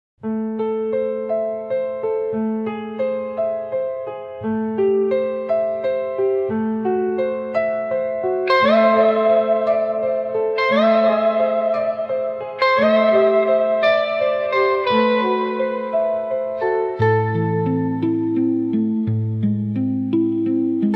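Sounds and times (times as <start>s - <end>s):
psychedelic instrumental music: 0.3s - 20.9s.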